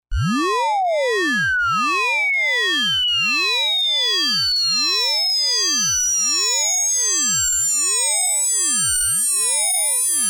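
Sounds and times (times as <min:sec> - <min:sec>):
20 Hz to 20 kHz tone sweep: 0:00.2 - 0:09.8.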